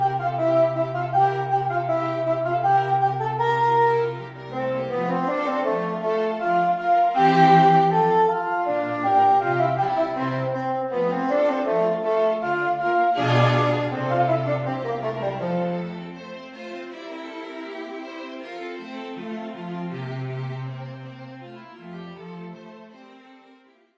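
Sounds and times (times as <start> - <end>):
quartet playing: 0.0 - 16.3.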